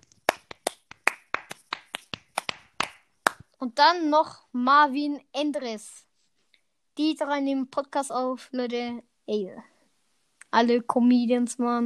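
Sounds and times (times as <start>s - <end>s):
sparse hand claps: 0.0s - 3.5s
speech: 3.6s - 6.1s, 7.0s - 9.7s, 10.5s - 11.8s.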